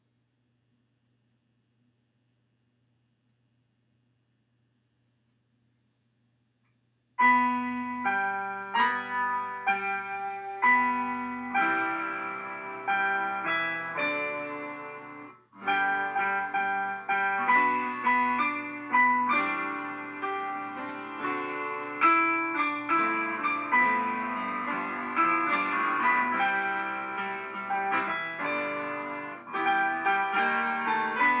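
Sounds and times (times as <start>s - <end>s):
CFX grand piano piece: 7.2s - 31.3s.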